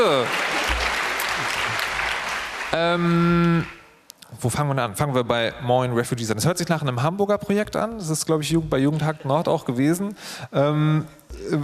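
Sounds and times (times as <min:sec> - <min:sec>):
audience applause: 0:00.0 - 0:03.9
speech: 0:02.7 - 0:11.6.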